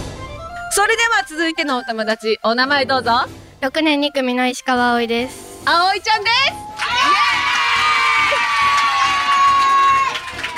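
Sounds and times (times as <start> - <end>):
speech: 0.7 - 7.2
children cheering and shouting: 6.8 - 10.5.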